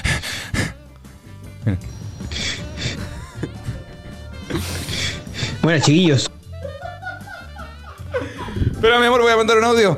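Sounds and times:
breathing at start of voice message: 0.0 - 0.9, 2.2 - 5.6, 8.2 - 8.8
speech: 1.6 - 2.4, 5.6 - 6.3, 8.8 - 9.9
laughter: 2.6 - 8.8.

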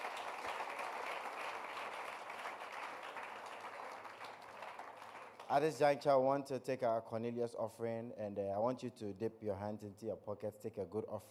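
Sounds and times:
audience applause: 0.0 - 5.5
speech: 5.5 - 11.2.

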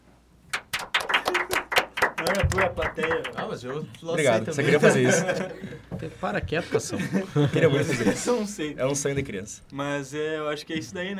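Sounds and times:
applause: 0.5 - 3.9
laughter: 2.2 - 8.8
speech: 2.2 - 11.1.

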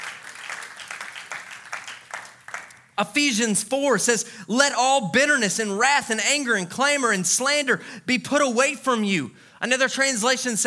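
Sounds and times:
audience clapping hands: 0.0 - 3.0
speech: 3.0 - 10.6.

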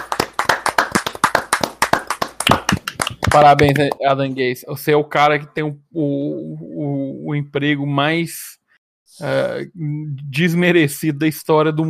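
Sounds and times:
applause: 0.0 - 4.0
speech: 3.3 - 11.8.

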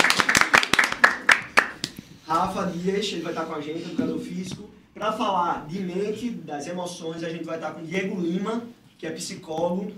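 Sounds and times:
round of applause: 0.0 - 1.9
speech: 2.3 - 9.9.

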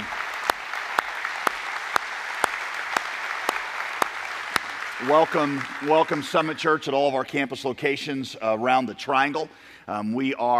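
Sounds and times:
church congregation at Summit Church applauding: 0.0 - 7.4
speech: 5.0 - 10.5.

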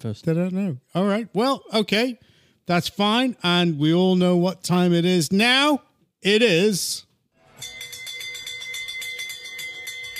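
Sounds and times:
speech: 0.0 - 7.7
bell ringing for last orders: 7.4 - 10.1.

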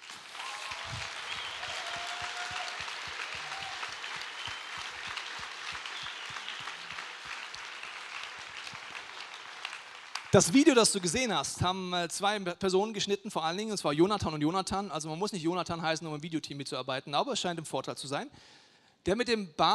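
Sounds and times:
audience applause: 0.0 - 11.3
speech: 10.3 - 19.7.

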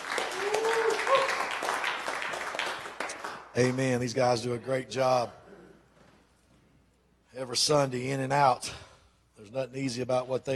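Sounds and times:
audience clapping hands: 0.0 - 3.8
person cheering: 0.2 - 1.5
speech: 3.6 - 5.4, 7.5 - 8.8, 9.4 - 10.5.

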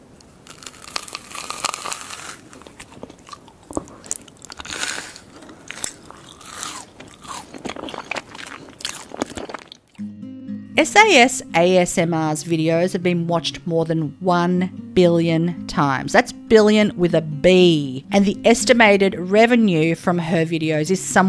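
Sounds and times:
crunching and crackling of brittle airy food being chewed: 0.1 - 10.0
speech: 10.8 - 21.2.

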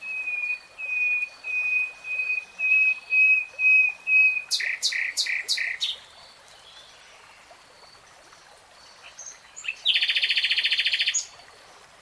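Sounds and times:
nightingale singing: 0.0 - 6.0, 9.0 - 11.3.

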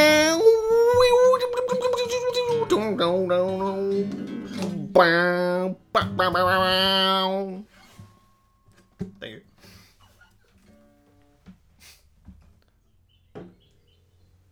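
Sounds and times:
voice imitating an electric guitar solo: 0.0 - 7.7
speech: 5.0 - 7.7.

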